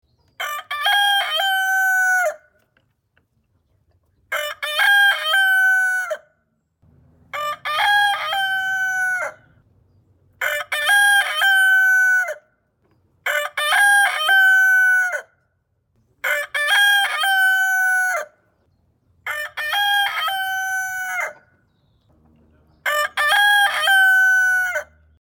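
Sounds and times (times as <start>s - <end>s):
rooster crowing: 0.4s - 2.5s, 4.4s - 6.3s, 7.3s - 9.5s, 10.4s - 12.5s, 13.3s - 15.3s, 16.3s - 18.4s, 19.3s - 21.5s, 22.8s - 25.0s.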